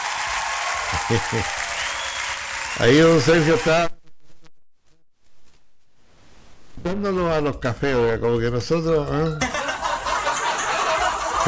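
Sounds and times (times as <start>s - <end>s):
applause: 0.0s - 3.8s
laughter: 0.9s - 1.7s, 9.4s - 11.4s
speech: 1.0s - 1.7s, 2.8s - 4.0s, 6.8s - 9.5s.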